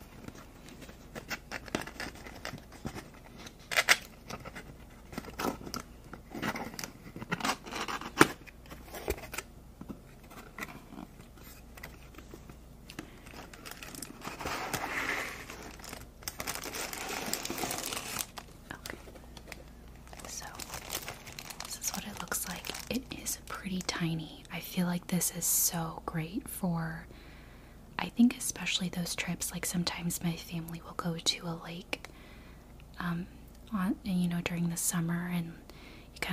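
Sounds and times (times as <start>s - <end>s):
hair dryer packaging being opened, crinkling and tearing: 0.1s - 9.5s, 10.2s - 23.9s
speech: 25.1s - 27.1s, 28.2s - 32.0s, 33.0s - 35.6s.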